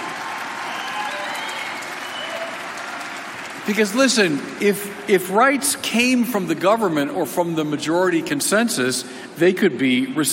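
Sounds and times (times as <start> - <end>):
audience applauding: 0.0 - 5.5
speech: 3.7 - 10.3.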